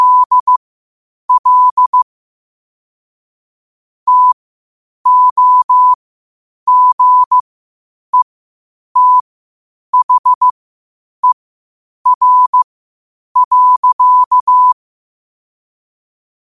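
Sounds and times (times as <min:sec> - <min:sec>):
morse code at 5 wpm: 0:00.0 - 0:00.6, 0:01.3 - 0:02.0, 0:04.1 - 0:04.4, 0:05.1 - 0:06.0, 0:06.7 - 0:07.4, 0:09.0 - 0:09.2, 0:10.0 - 0:10.5, 0:12.1 - 0:12.6, 0:13.4 - 0:14.8.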